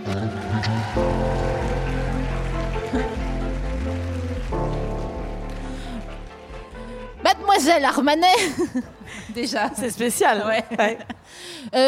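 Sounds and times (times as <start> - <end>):
crowd applause: 0.0 - 7.2
loud band music: 0.0 - 8.1
speech: 0.2 - 1.8, 2.9 - 3.3, 7.6 - 11.8.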